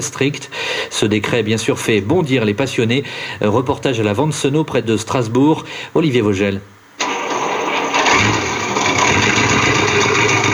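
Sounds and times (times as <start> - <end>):
speech: 0.0 - 6.8
engine of an American M24 Chaffee Second World War tank rumbling: 7.0 - 10.5.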